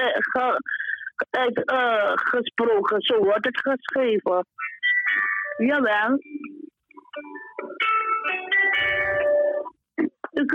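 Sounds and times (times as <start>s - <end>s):
speech: 0.0s - 7.8s, 10.4s - 10.5s
phone ringtone melody: 4.6s - 9.8s.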